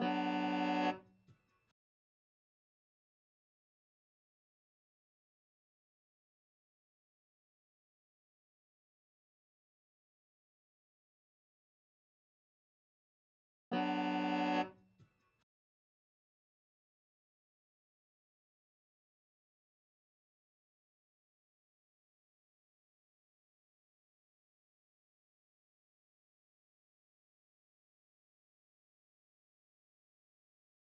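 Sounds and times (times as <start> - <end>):
melodica in dub music: 0.0 - 1.0, 13.7 - 14.8.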